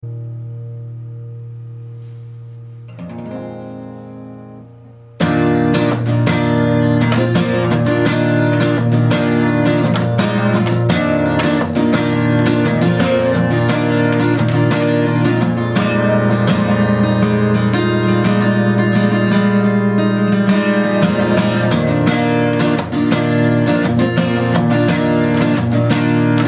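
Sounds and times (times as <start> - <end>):
jazz chords: 0.0 - 26.4.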